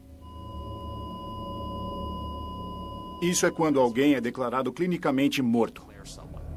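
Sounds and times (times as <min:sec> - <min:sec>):
heart monitor flatline tone: 0:00.2 - 0:04.6
speech: 0:03.2 - 0:06.3.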